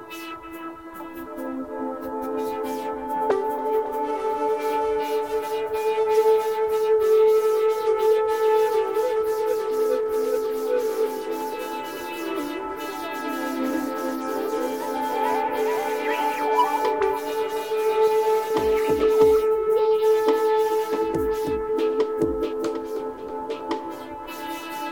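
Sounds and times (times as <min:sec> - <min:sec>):
ambient drone: 0:01.2 - 0:22.4.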